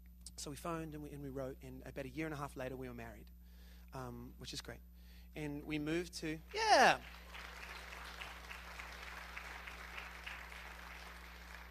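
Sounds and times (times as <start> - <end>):
speech: 0.4 - 7.3
audience applause: 6.6 - 11.6.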